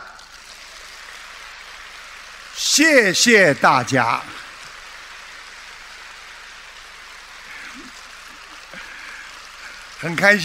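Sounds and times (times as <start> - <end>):
audience applause: 0.0 - 10.4
speech: 2.8 - 4.4, 10.0 - 10.4.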